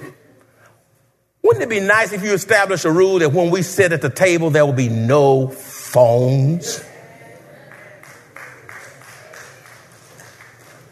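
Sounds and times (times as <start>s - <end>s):
speech: 1.5s - 6.9s
few audience members clapping: 7.6s - 10.9s.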